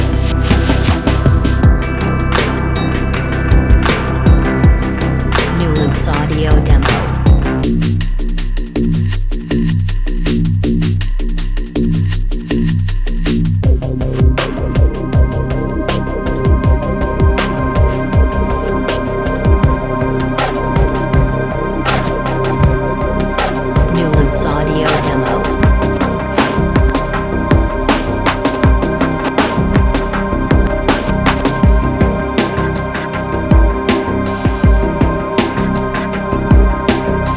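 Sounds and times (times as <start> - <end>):
ambient drum loops: 0.0 - 37.3.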